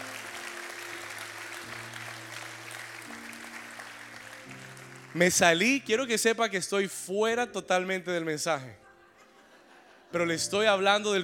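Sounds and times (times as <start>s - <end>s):
audience clapping: 0.0s - 6.0s
speech: 5.2s - 8.8s, 10.1s - 11.2s
laughter: 8.9s - 10.6s.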